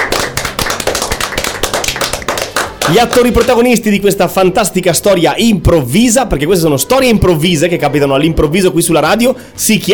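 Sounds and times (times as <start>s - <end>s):
small group clapping after an improvised children's story performance: 0.0s - 3.9s
speech: 2.9s - 9.9s.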